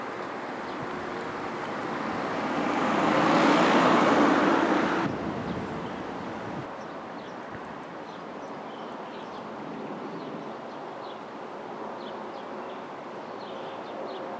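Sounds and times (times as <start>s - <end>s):
distant road traffic: 0.0s - 6.7s.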